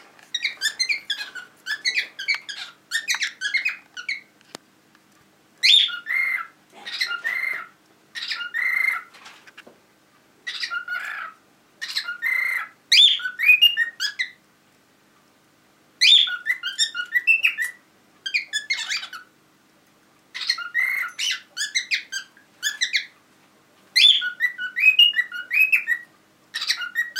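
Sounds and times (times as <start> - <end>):
cockatiel parrot calling: 0.3 - 4.3, 5.6 - 9.1, 10.4 - 14.4, 16.0 - 19.3, 20.3 - 23.2, 24.0 - 27.1.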